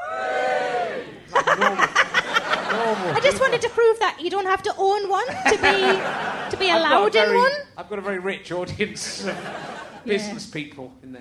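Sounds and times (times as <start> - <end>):
comedy audience cheering: 0.0 - 3.5
laughter: 1.2 - 3.9, 5.2 - 7.6, 9.0 - 10.3
speech: 3.2 - 11.2.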